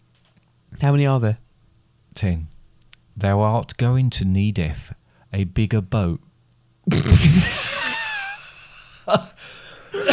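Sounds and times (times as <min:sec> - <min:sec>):
speech: 0:00.8 - 0:01.4, 0:02.2 - 0:02.5, 0:03.2 - 0:06.2, 0:06.9 - 0:07.7, 0:09.1 - 0:09.3
coughing fit: 0:09.1 - 0:10.1.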